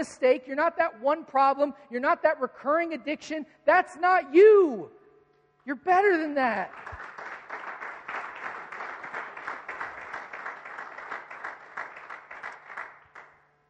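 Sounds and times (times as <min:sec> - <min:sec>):
speech: 0:00.0 - 0:05.0, 0:05.6 - 0:07.0
crowd clapping: 0:06.6 - 0:13.4.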